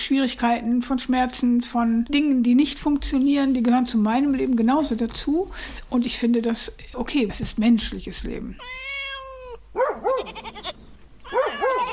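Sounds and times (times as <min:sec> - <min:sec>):
speech: 0:00.0 - 0:08.9
dwarf goats bleating: 0:10.2 - 0:11.9.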